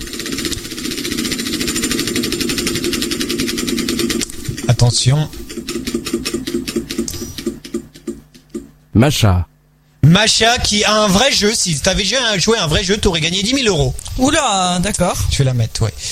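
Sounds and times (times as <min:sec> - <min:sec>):
game show prize wheel spinning and stopping: 0:00.0 - 0:08.7
speech: 0:04.9 - 0:05.4, 0:09.0 - 0:09.5, 0:10.1 - 0:16.1.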